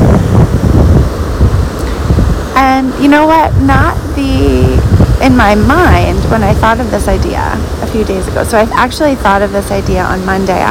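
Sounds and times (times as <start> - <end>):
blustery wind buffeting the microphone on a beach: 0.0 - 10.7
surf-like noise: 0.0 - 10.7
speech: 2.6 - 4.5, 5.2 - 10.7.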